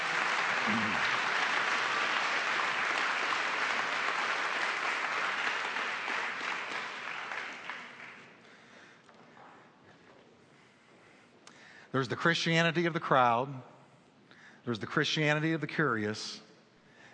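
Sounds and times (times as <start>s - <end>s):
audience applause: 0.0s - 8.4s
speech: 0.7s - 1.3s, 11.9s - 13.7s, 14.6s - 16.4s.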